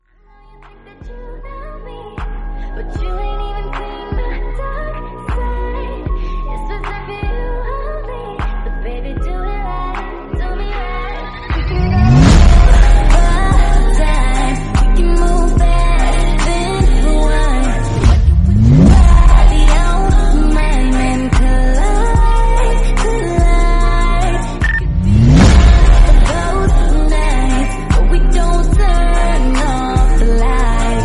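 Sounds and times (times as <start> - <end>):
English remix: 11.3 - 31.0.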